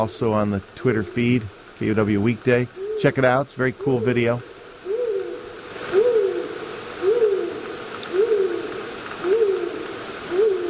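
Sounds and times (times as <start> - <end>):
speech: 0.0 - 4.5
owl hooting: 2.7 - 10.6.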